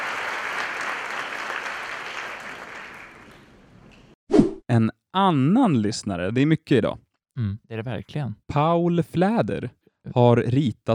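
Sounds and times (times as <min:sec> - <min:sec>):
applause: 0:00.0 - 0:04.1
speech: 0:04.7 - 0:10.9.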